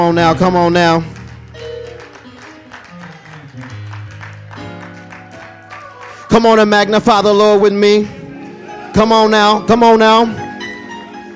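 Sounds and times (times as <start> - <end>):
speech: 0.0 - 1.1, 6.3 - 8.2, 9.0 - 10.4
sustained organ-like music: 0.0 - 11.3
audience hand clapping: 0.2 - 7.4.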